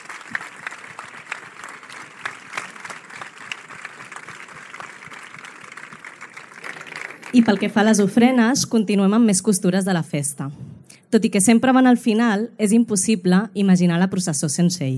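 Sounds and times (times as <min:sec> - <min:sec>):
crowd applause: 0:00.0 - 0:08.1
speech: 0:07.3 - 0:14.9.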